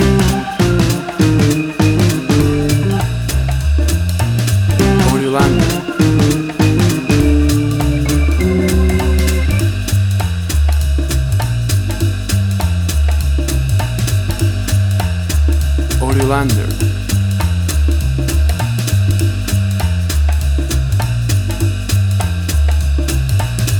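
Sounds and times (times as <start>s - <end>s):
60s acid jazz music: 0.0s - 23.7s.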